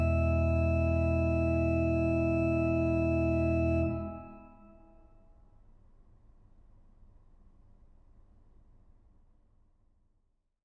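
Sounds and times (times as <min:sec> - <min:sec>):
organist playing a praeludium in E minor: 0:00.0 - 0:04.8.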